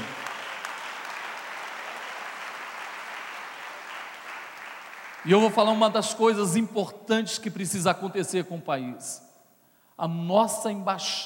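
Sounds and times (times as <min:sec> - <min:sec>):
audience applause: 0:00.0 - 0:05.5
speech: 0:05.2 - 0:09.3, 0:10.0 - 0:11.2.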